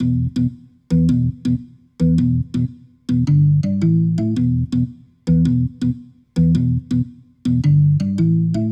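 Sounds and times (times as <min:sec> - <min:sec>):
rotor organ riff: 0:00.0 - 0:08.7.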